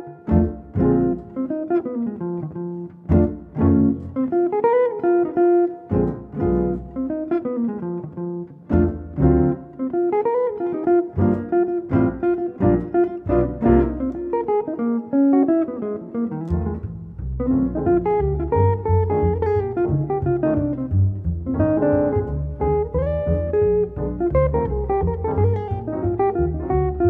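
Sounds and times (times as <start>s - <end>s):
blues jazz trio with guitar, piano and bass: 0.2s - 27.0s.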